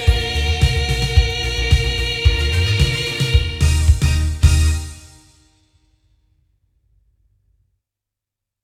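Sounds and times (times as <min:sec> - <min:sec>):
loudspeakers: 0:00.0 - 0:05.1.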